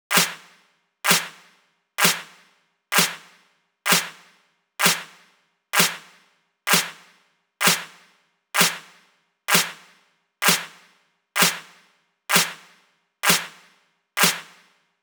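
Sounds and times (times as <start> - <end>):
clap: 0.1 - 0.4, 1.1 - 1.3, 2.0 - 2.3, 2.9 - 3.2, 3.9 - 4.1, 4.8 - 5.1, 5.8 - 6.0, 6.7 - 6.9, 7.6 - 7.9, 8.6 - 8.8, 9.5 - 9.8, 10.4 - 10.7, 11.4 - 11.7, 12.3 - 12.6, 13.2 - 13.5, 14.2 - 14.5.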